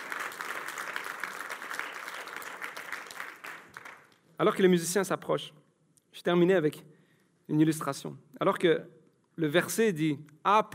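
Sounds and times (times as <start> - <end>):
audience applauding: 0.0 - 4.2
speech: 4.4 - 5.6, 6.2 - 6.9, 7.5 - 10.7.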